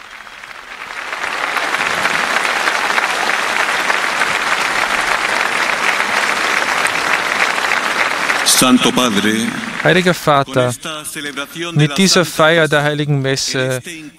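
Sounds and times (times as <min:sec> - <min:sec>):
thunderous applause from crowd: 0:00.0 - 0:10.7
speech: 0:08.6 - 0:14.1.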